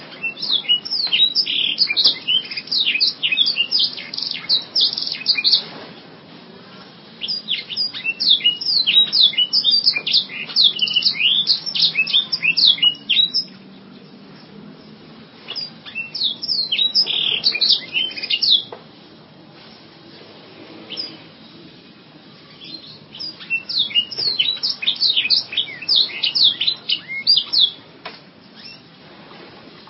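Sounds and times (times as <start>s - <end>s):
canary singing fast high twittering phrases: 0.0s - 5.7s, 7.2s - 14.2s, 14.8s - 18.8s, 20.9s - 21.3s, 22.5s - 27.8s, 28.5s - 28.9s.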